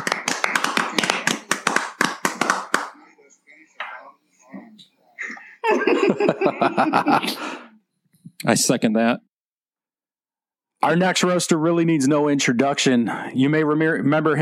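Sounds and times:
crowd clapping: 0.0s - 3.0s
laughter: 5.2s - 7.6s
speech: 5.7s - 7.6s, 8.4s - 9.3s, 10.8s - 14.4s.

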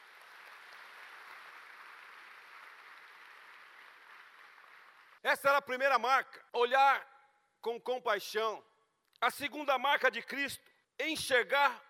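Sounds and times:
audience applauding: 0.0s - 5.2s
speech: 5.2s - 11.8s.

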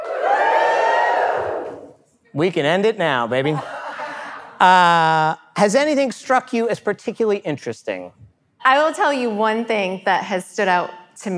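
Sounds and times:
live audience at an Ad Week event cheering woohoo: 0.0s - 2.0s
speech: 2.4s - 3.7s, 4.6s - 11.3s
laughter: 3.4s - 5.4s.

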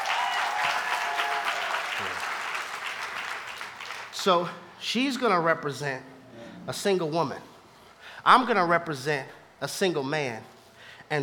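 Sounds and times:
audience applause: 0.0s - 4.1s
speech: 4.2s - 7.5s, 8.2s - 10.5s, 11.1s - 11.2s.

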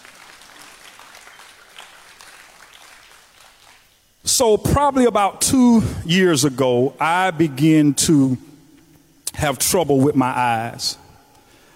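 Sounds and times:
audience clapping: 0.0s - 4.0s
speech: 4.2s - 8.5s, 9.4s - 11.0s.

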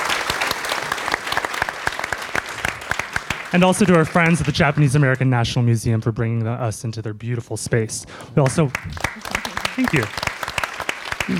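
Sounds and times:
audience applause: 0.0s - 5.3s, 8.4s - 11.3s
speech: 3.5s - 10.3s.

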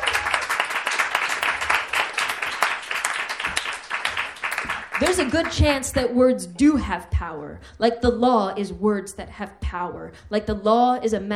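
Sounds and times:
audience applause: 0.0s - 6.0s
speech: 5.0s - 11.3s.

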